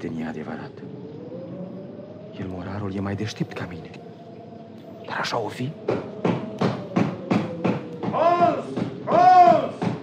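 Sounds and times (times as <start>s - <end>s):
speech: 0.0s - 1.1s, 2.4s - 4.1s, 5.1s - 6.2s
knocking on a door: 5.8s - 10.0s.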